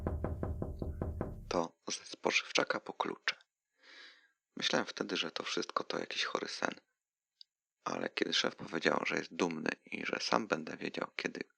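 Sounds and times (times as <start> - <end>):
knocking on a window: 0.0 - 1.6
speech: 1.5 - 3.4, 4.6 - 6.9, 7.8 - 11.5.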